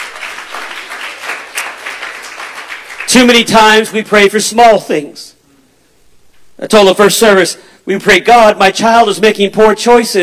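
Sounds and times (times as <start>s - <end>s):
crowd clapping: 0.0s - 4.0s
speech: 3.1s - 5.4s, 6.6s - 10.2s.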